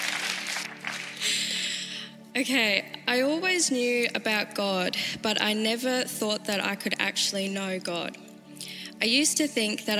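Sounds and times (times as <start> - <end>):
audience clapping: 0.0 - 1.6
speech: 2.4 - 8.3, 9.0 - 9.9.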